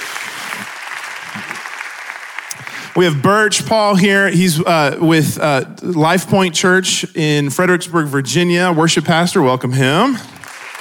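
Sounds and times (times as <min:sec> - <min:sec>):
church audience applauding to welcome a worship pastor: 0:00.0 - 0:03.6, 0:10.3 - 0:10.7
speech: 0:03.0 - 0:10.4.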